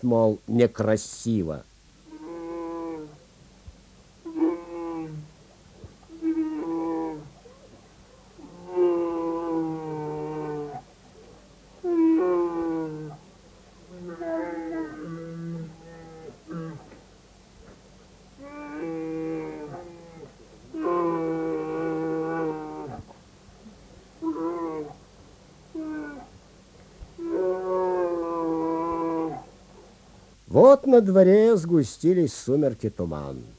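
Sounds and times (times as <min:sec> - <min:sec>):
speech: 0:00.0 - 0:01.7, 0:30.9 - 0:33.5
low steady hum: 0:00.0 - 0:33.5
bear roaring plaintively: 0:02.1 - 0:03.3, 0:04.2 - 0:11.0, 0:11.8 - 0:17.0, 0:18.4 - 0:26.4, 0:27.1 - 0:29.6.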